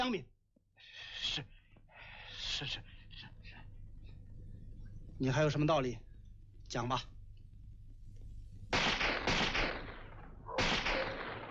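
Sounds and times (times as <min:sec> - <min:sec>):
speech: 0:00.0 - 0:01.6, 0:02.6 - 0:03.3, 0:05.2 - 0:06.1, 0:06.7 - 0:07.1
gunfire, many shots: 0:08.7 - 0:11.5.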